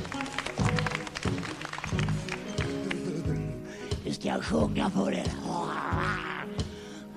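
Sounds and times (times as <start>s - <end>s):
small round of hand clapping: 0.0s - 3.5s
speech: 4.2s - 6.7s.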